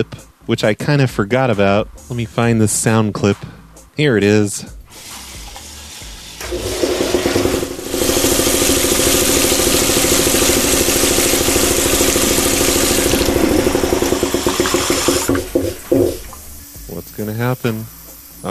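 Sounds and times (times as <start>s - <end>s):
speech: 0.0s - 5.1s, 17.2s - 18.4s
air compressor running: 4.9s - 17.0s.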